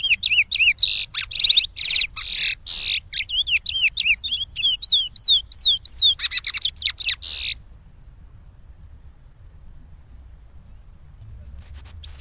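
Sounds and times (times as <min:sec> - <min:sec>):
chestnut-bellied seed finch singing: 0:00.0 - 0:07.6, 0:11.6 - 0:12.1.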